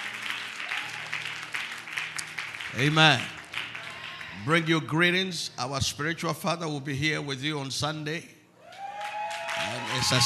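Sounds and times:
audience clapping hands: 0:00.0 - 0:04.8, 0:08.7 - 0:10.2
speech: 0:02.8 - 0:03.4, 0:04.4 - 0:08.4, 0:09.6 - 0:10.2.

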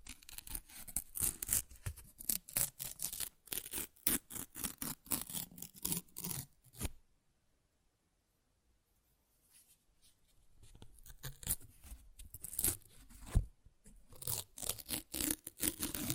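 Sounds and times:
paper ripping and tearing: 0:00.0 - 0:07.0, 0:12.3 - 0:12.9, 0:14.1 - 0:16.1.

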